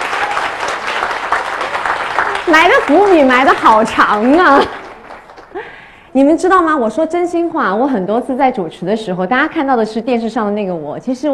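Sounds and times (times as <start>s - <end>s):
audience applause: 0.0s - 5.9s
speech: 2.5s - 4.8s, 6.1s - 11.3s.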